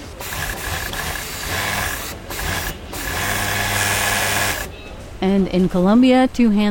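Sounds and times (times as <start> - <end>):
sewing machine stitching pink fabric: 0.0 - 4.7
speech: 5.2 - 6.6.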